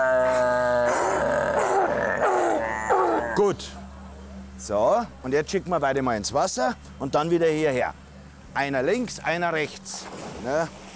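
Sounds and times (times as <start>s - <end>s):
dog vocalizing on command: 0.0s - 3.4s
speech: 3.4s - 3.8s, 4.6s - 10.8s.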